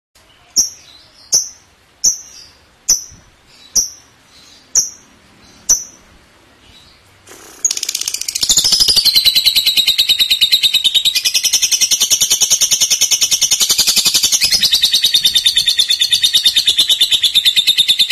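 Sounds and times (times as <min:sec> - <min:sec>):
lovebird rapid stuttering chatter song: 0:07.3 - 0:18.0.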